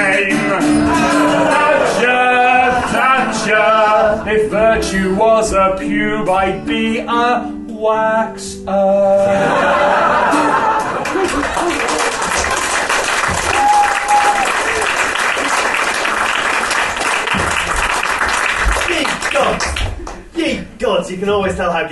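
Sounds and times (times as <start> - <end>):
laughter: 0.7 - 4.7, 9.2 - 12.9
speech: 4.2 - 10.6, 20.4 - 21.9
audience applause: 10.6 - 20.2.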